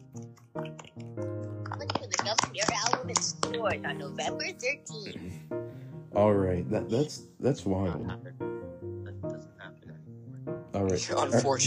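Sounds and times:
clapping: 0.6s - 3.7s
speech: 3.5s - 5.6s, 6.2s - 8.4s, 10.9s - 11.6s.

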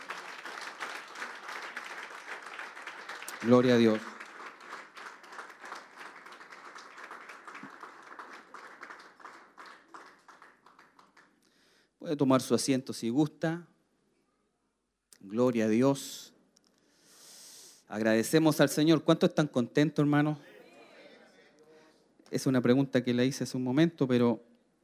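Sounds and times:
audience applause: 0.0s - 11.4s
speech: 3.4s - 4.1s, 12.1s - 13.7s, 15.3s - 16.3s, 17.9s - 20.5s, 22.3s - 24.5s.

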